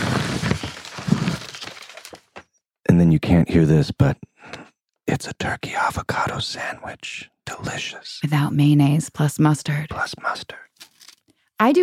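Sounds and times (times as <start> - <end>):
recyclable paper bag crinkling: 0.0 - 2.4, 10.8 - 11.2
speech: 2.9 - 10.7, 11.6 - 11.8.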